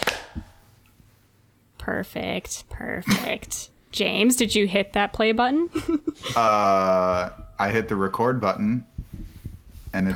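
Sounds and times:
single hand clap for recording sync: 0.0 - 0.5
speech: 1.8 - 8.9, 10.0 - 10.1.

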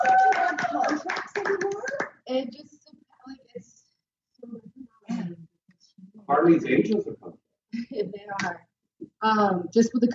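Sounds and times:
people whooping and cheering: 0.0 - 2.0
applause from a small group: 0.0 - 2.2
speech: 6.4 - 7.2, 9.2 - 10.1.

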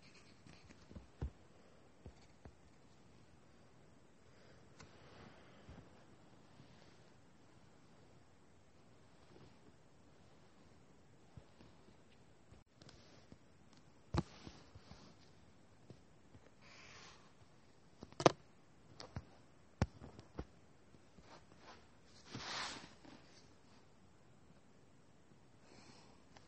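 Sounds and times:
drawing and writing scratches: 0.0 - 1.2
low hiss: 0.0 - 26.4.

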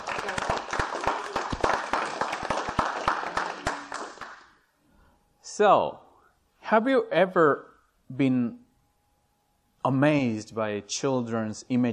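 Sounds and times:
church congregation applause welcoming visiting Wingate students and faculty: 0.0 - 4.6
speech: 5.6 - 6.0, 6.7 - 8.6, 9.8 - 11.9.

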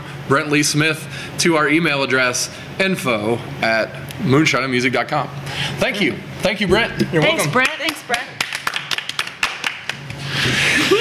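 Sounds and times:
speech: 0.3 - 8.4
small group applause: 7.4 - 10.2
laughter: 10.3 - 10.9.

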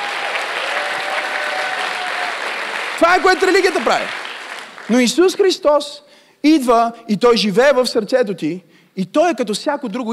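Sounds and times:
audience applause: 0.0 - 5.2
speech: 3.0 - 4.2, 4.9 - 10.1.

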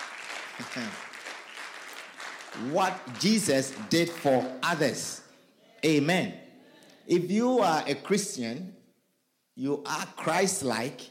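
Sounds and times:
church congregation clapping their hands during a Christian sermon: 0.0 - 5.2
speech: 0.6 - 1.1, 2.5 - 5.2, 5.8 - 6.4, 7.1 - 8.8, 9.6 - 11.0.

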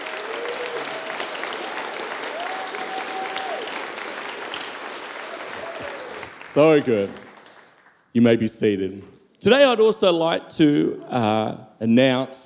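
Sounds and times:
people clapping: 0.0 - 8.2
speech: 6.6 - 7.2, 8.2 - 12.4.

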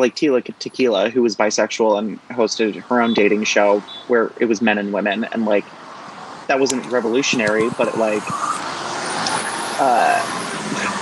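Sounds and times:
speech: 0.0 - 5.8, 6.5 - 8.6, 9.8 - 10.9
truck passing: 2.3 - 11.0.

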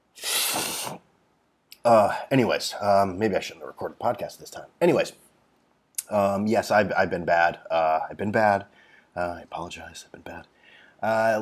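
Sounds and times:
person sniffing after eating habanero hot sauce: 0.1 - 1.0
speech: 0.6 - 1.1, 1.8 - 5.2, 6.1 - 11.3.

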